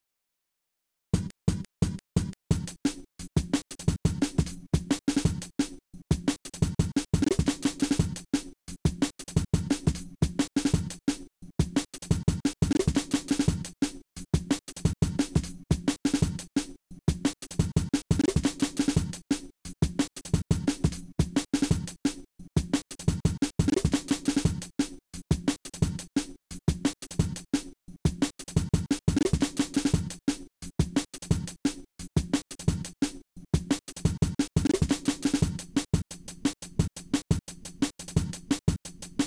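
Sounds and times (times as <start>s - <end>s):
old-school breakbeat drums: 1.2s - 39.2s.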